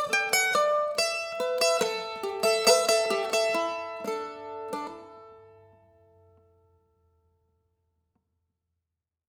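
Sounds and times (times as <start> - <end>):
soft sad mandolin: 0.0 - 6.6.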